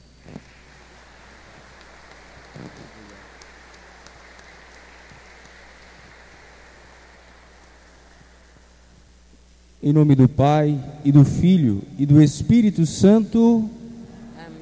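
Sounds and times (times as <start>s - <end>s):
audience applause: 0.2s - 9.0s
speech: 2.6s - 3.3s, 9.8s - 13.8s.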